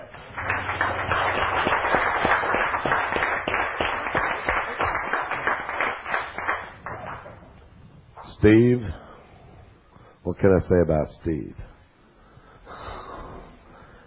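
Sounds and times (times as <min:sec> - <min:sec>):
audience clapping: 0:00.0 - 0:07.7
speech: 0:08.4 - 0:09.0, 0:10.3 - 0:11.6.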